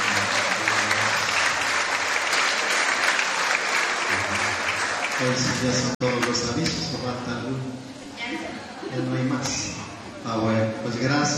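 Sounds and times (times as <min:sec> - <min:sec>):
audience applauding: 0:00.0 - 0:06.4
speech: 0:05.2 - 0:11.3.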